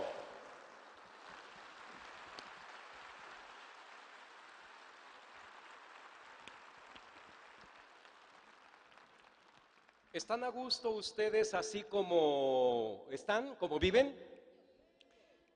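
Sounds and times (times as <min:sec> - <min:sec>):
audience applause: 0:00.0 - 0:10.1
speech: 0:10.2 - 0:14.3.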